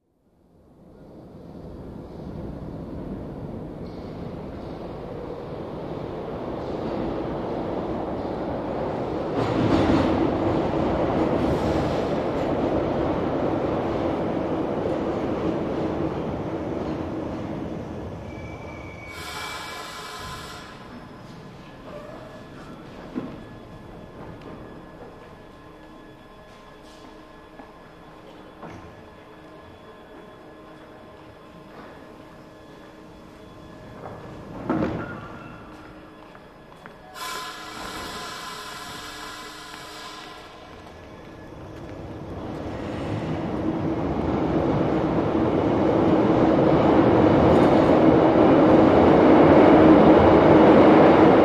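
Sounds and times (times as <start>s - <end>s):
train stopping in a tunnel: 0.8s - 51.4s
train doors opening and closing: 6.4s - 25.4s, 33.6s - 51.4s.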